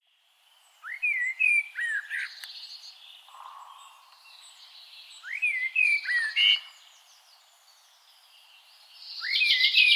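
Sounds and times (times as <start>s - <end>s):
common blackbird Turdus merula singing: 0.5s - 9.9s.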